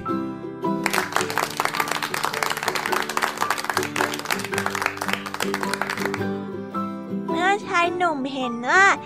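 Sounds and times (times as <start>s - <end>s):
soft music: 0.0s - 9.0s
group of children clapping hands: 0.8s - 6.4s
speech: 7.9s - 9.0s.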